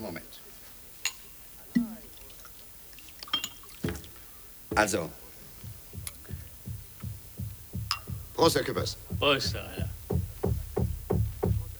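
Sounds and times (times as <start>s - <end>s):
speech: 0.0s - 0.5s, 4.8s - 5.2s, 8.4s - 10.0s
heavy dull knocking from the ceiling above: 5.6s - 11.7s.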